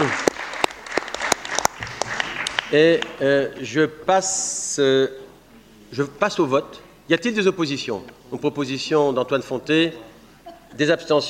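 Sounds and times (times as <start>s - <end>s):
audience applause at a meeting: 0.0s - 2.8s
speech: 2.7s - 5.2s, 5.9s - 10.1s, 10.7s - 11.2s.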